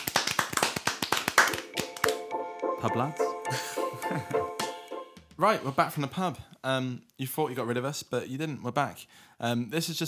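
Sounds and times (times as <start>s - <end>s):
hands clapping: 0.0s - 3.4s, 4.0s - 4.9s
speech: 2.8s - 4.6s, 5.4s - 10.0s.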